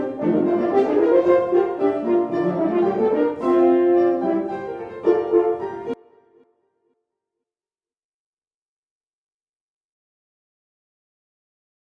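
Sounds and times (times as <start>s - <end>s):
fantasy played by two horns: 0.0s - 6.0s.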